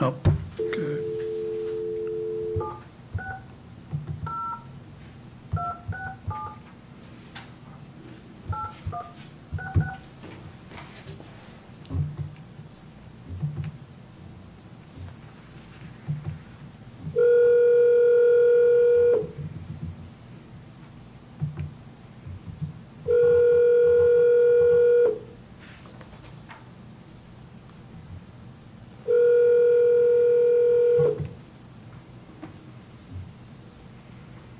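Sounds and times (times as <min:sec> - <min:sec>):
long steady telephone ringing tones on the line: 0:00.6 - 0:03.5, 0:04.3 - 0:04.7, 0:05.5 - 0:06.6, 0:17.2 - 0:19.3, 0:23.1 - 0:25.2, 0:29.0 - 0:31.2
touch-tone keypad beeps as a telephone call is dialed: 0:00.6 - 0:03.5, 0:04.3 - 0:04.7, 0:05.6 - 0:06.6, 0:08.5 - 0:10.0.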